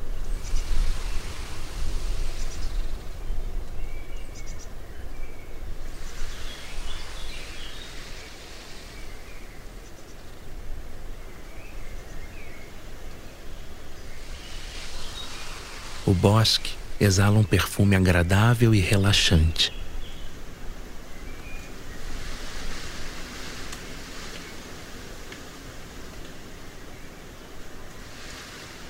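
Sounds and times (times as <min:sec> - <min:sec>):
gentle wind rustling olive tree branches: 0:00.0 - 0:28.8
faint bird chirps: 0:00.1 - 0:10.4, 0:11.1 - 0:18.0, 0:18.6 - 0:23.4
speech: 0:16.1 - 0:19.8.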